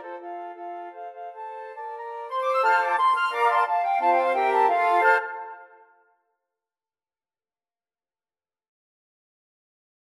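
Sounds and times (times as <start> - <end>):
flute choir: 0.0 - 6.0.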